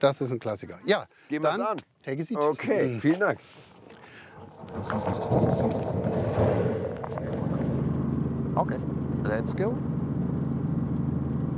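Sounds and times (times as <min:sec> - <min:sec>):
speech: 0:00.0 - 0:07.4, 0:08.6 - 0:09.9
Robinson helicopter engine running: 0:04.0 - 0:11.5.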